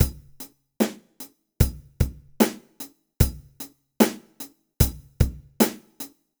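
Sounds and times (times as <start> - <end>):
drum: 0.0 - 6.1.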